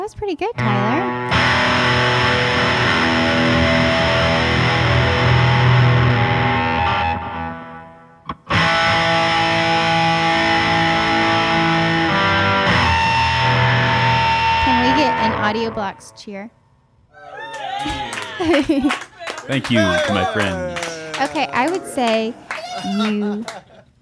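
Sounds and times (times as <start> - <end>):
speech: 0.0 - 2.2, 15.5 - 16.6, 17.8 - 23.7
loud heavily distorted electric guitar chords: 0.6 - 16.3
laughter: 17.5 - 23.9.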